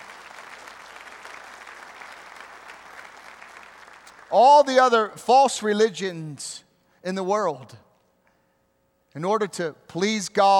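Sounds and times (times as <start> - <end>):
audience applauding: 0.0 - 4.3
speech: 4.3 - 7.8, 9.2 - 10.5.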